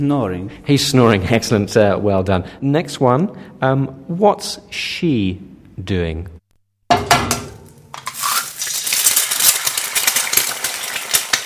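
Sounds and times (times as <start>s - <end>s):
speech: 0.0s - 7.1s
eggs frying in a pan: 8.0s - 11.4s.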